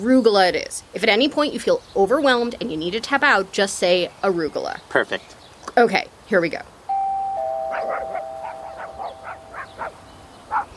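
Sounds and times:
speech: 0.0 - 6.7
doorbell ringing: 6.9 - 9.8.

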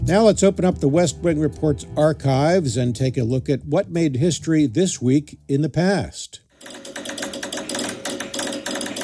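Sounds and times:
speech: 0.1 - 6.4
telegraph key clicking Morse code: 6.7 - 9.0.

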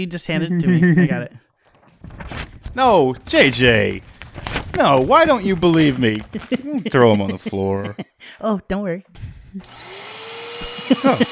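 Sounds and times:
speech: 0.0 - 1.4, 2.0 - 4.1, 4.8 - 10.0, 10.9 - 11.3
laughter: 0.6 - 1.4, 4.8 - 8.4, 10.6 - 11.3
vacuum cleaner running with a steady drone and mid-pitched whine: 9.6 - 11.3.

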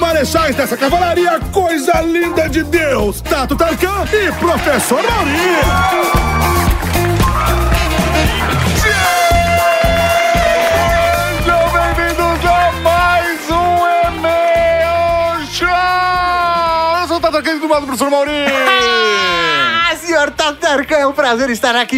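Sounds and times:
bright sustained musical backing: 0.0 - 21.9
speech: 0.2 - 8.6, 17.8 - 19.4, 20.1 - 21.9
studio audience cheering and whooping: 4.0 - 17.4, 18.2 - 20.1.

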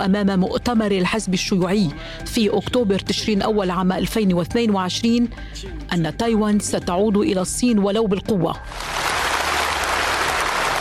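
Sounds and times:
speech: 0.0 - 9.1
warm applause in conference hall: 8.6 - 10.7.

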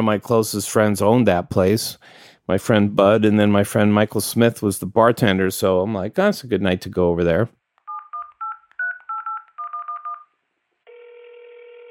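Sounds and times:
speech: 0.0 - 7.6
steady phone tone: 7.9 - 10.3, 10.9 - 11.8.

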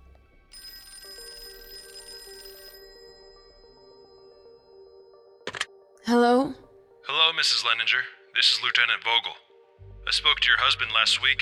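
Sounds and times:
telephone ringing: 0.5 - 5.7
speech: 7.4 - 9.4, 10.1 - 11.3.

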